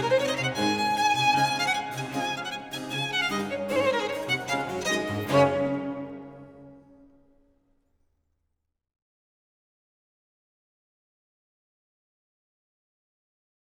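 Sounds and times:
violin sonata with basso continuo in D major: 0:00.0 - 0:07.2.

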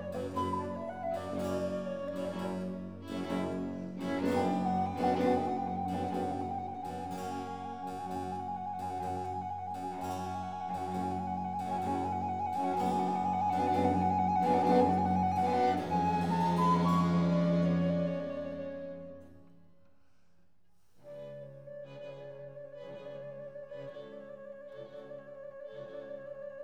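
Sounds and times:
concerto in G minor largo movement: 0:00.0 - 0:19.6.

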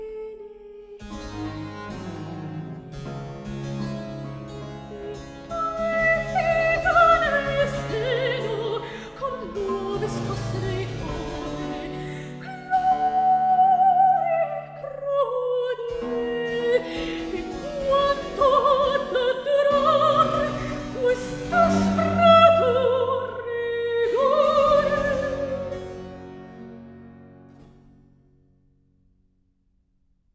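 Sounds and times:
cantata recitative: 0:00.0 - 0:02.7, 0:04.8 - 0:26.1.

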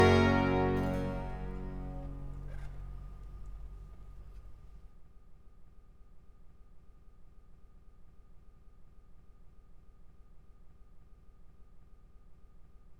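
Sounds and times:
concerto allegro for two violins and cello: 0:00.0 - 0:03.0.

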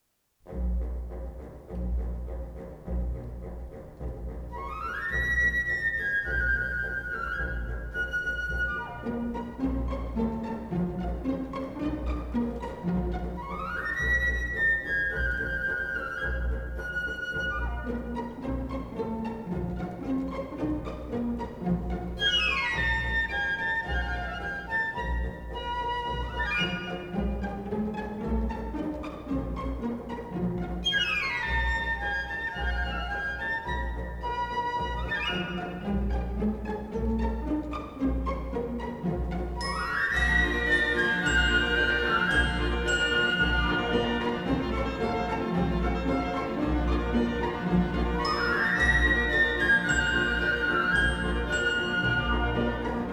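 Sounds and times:
ballet suite music: 0:00.4 - 0:53.1.

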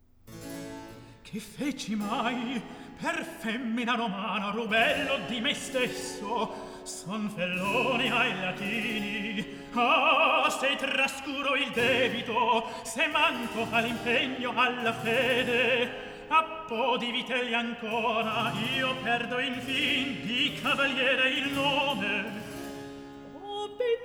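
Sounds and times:
recitative singing: 0:01.3 - 0:24.0.

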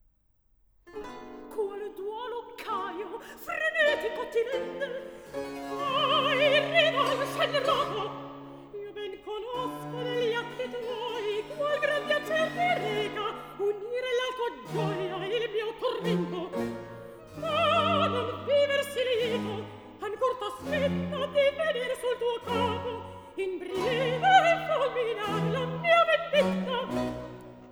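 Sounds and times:
recitative singing: 0:01.6 - 0:27.7.

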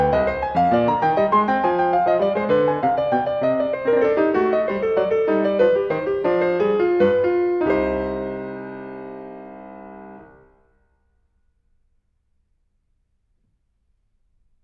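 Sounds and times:
baroque dance piece: 0:00.0 - 0:10.7.

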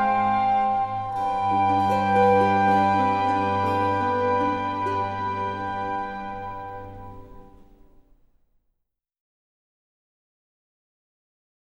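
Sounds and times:
orchestra: 0:00.0 - 0:07.9
oboe: 0:00.0 - 0:08.0.

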